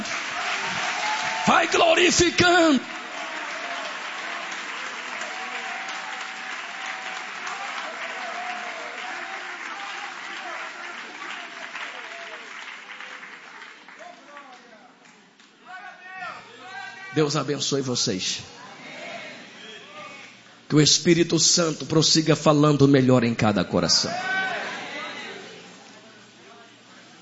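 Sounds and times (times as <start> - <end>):
audience applauding: 0.0 - 15.6
speech: 1.5 - 3.0, 17.2 - 18.7, 20.7 - 24.4.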